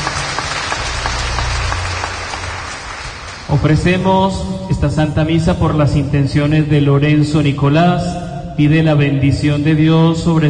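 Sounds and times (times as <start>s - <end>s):
audience clapping hands: 0.0s - 4.0s
speech: 3.5s - 10.4s.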